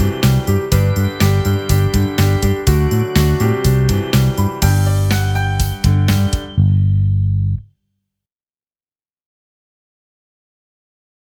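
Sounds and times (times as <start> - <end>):
instrumental music: 0.0 - 7.6.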